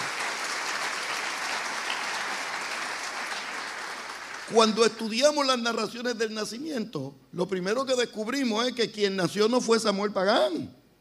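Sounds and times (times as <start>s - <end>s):
audience applauding: 0.0s - 4.9s
speech: 4.5s - 10.8s.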